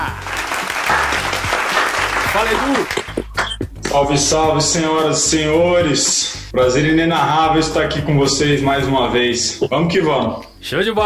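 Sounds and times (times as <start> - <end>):
applause: 0.0 - 3.6
speech: 2.3 - 3.0, 3.9 - 11.0.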